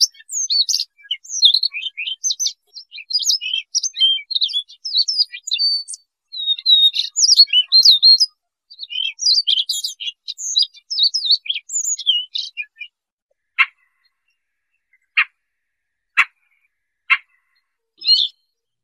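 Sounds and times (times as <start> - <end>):
Siberian rubythroat song: 0.0 - 18.8.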